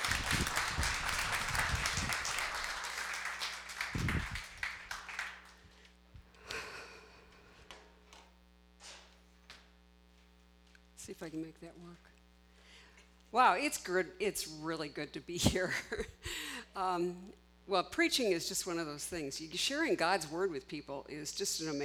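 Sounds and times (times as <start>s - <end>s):
church audience applause welcoming a woman speaker to the stage: 0.0s - 5.7s
speech: 11.1s - 12.2s, 13.3s - 16.2s, 16.8s - 21.8s.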